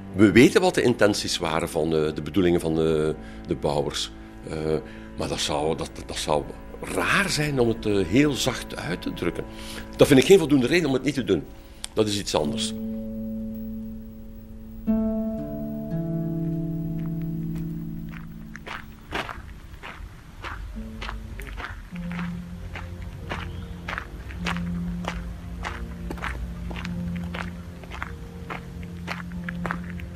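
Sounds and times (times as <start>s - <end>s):
speech: 0.2s - 12.9s
low droning hum: 4.1s - 20.4s
footsteps crunching: 5.3s - 30.1s.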